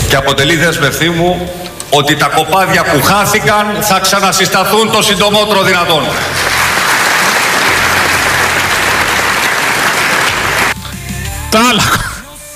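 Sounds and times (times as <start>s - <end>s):
speech: 0.1s - 6.8s, 11.5s - 12.1s
audience applause: 6.1s - 10.8s.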